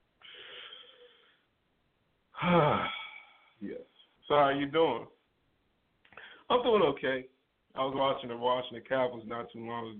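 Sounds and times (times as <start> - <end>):
group breathing together during a rehab group session: 0.2 - 1.6, 2.4 - 3.6, 6.1 - 6.5
speech: 2.4 - 3.0, 3.6 - 5.2, 6.5 - 9.9.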